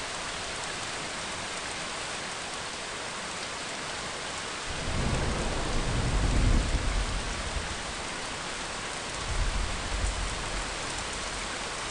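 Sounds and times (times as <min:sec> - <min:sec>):
rain: 0:00.0 - 0:11.9
thunder: 0:04.7 - 0:07.8.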